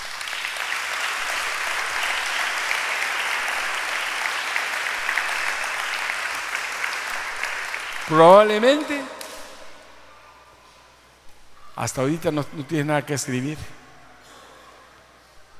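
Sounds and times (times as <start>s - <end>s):
audience applause: 0.0s - 9.4s
speech: 8.1s - 9.2s, 11.8s - 13.8s.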